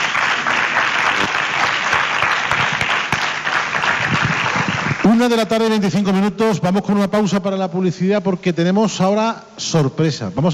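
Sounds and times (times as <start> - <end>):
crowd applauding: 0.0 - 5.8
speech: 5.1 - 10.5.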